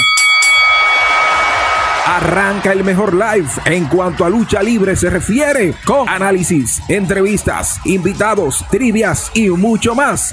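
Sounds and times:
wrestling ring bell: 0:00.0 - 0:01.8
speech: 0:02.2 - 0:10.3.

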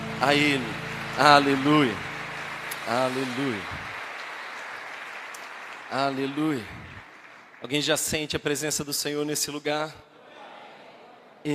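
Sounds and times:
audience applauding: 0:00.0 - 0:08.4
speech: 0:00.2 - 0:02.1, 0:02.9 - 0:03.8, 0:05.9 - 0:06.8, 0:07.6 - 0:10.1.

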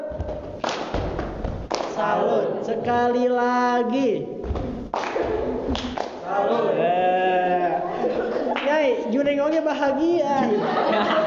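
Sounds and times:
group rhythmic clapping game: 0:00.0 - 0:03.2, 0:04.4 - 0:06.8, 0:08.1 - 0:08.9
speech: 0:02.0 - 0:04.6, 0:08.8 - 0:11.2
laughter: 0:06.3 - 0:09.1, 0:10.2 - 0:11.2.

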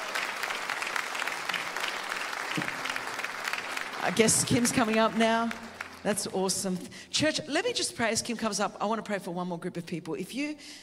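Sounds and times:
church audience applause: 0:00.0 - 0:06.3
speech: 0:04.0 - 0:10.8.

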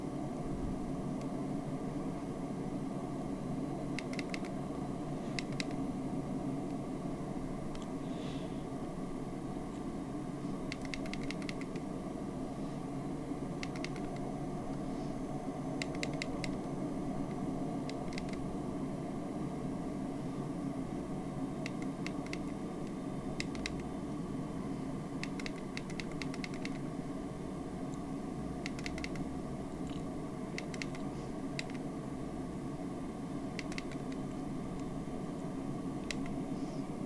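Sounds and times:
PMDG 737-700 airliner cockpit and engine noise approaching runway in a flight simulator game: 0:00.0 - 0:37.0
faint clicks: 0:04.0 - 0:04.6, 0:05.3 - 0:05.8, 0:10.7 - 0:11.9, 0:13.6 - 0:14.3, 0:15.8 - 0:16.7, 0:17.3 - 0:18.4, 0:21.6 - 0:23.9, 0:25.2 - 0:26.8, 0:28.6 - 0:31.8, 0:33.6 - 0:34.9, 0:36.0 - 0:36.4.

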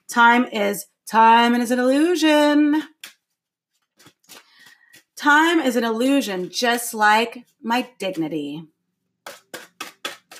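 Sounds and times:
speech: 0:00.1 - 0:02.9, 0:05.2 - 0:09.4
tarot cards shuffling: 0:02.9 - 0:05.2, 0:09.3 - 0:10.3.

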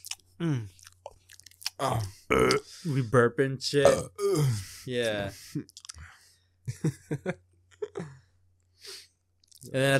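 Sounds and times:
vocally imitated mukbang-style mouth smacks and crunchy clicks: 0:00.0 - 0:02.6, 0:05.6 - 0:06.0, 0:09.4 - 0:09.7
person moaning mmm: 0:00.4 - 0:00.7, 0:01.8 - 0:02.6, 0:03.9 - 0:04.6
speech: 0:00.4 - 0:00.8, 0:01.8 - 0:05.8, 0:06.7 - 0:08.2, 0:09.6 - 0:09.9
laughter: 0:06.7 - 0:08.1.

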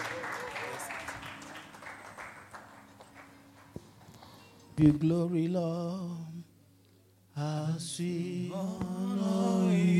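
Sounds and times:
audience clapping hands: 0:00.0 - 0:04.1
speech: 0:04.8 - 0:06.4, 0:07.4 - 0:09.9.

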